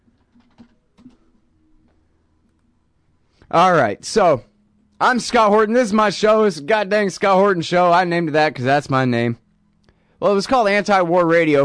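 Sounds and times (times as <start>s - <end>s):
typing an email on a computer keyboard: 0.1s - 1.4s
speech: 3.5s - 9.4s, 10.2s - 11.6s.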